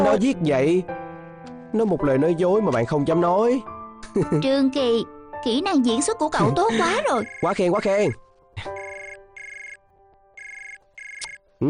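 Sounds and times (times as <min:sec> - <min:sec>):
speech: 0:00.1 - 0:01.0, 0:01.7 - 0:08.8
phone ringtone signalling an incoming call: 0:07.1 - 0:07.7, 0:08.7 - 0:09.8, 0:10.4 - 0:11.4.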